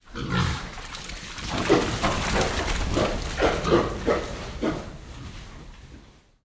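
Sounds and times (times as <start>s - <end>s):
scared pigs running in wet mud in a shed: 0.0s - 6.1s.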